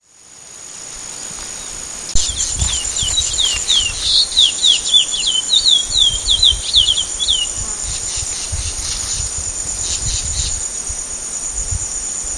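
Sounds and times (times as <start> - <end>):
chestnut-bellied seed finch whistling song: 2.2 - 7.6.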